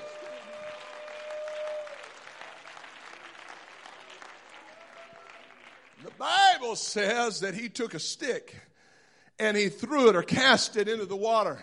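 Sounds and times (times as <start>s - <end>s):
crowd clapping hands in praise: 0.0s - 6.7s
speech: 6.2s - 8.7s, 9.4s - 11.6s.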